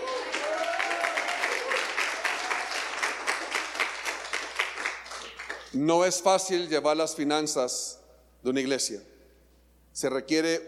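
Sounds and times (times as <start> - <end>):
audience applause: 0.0 - 5.7
speech: 5.8 - 9.1, 10.0 - 10.6.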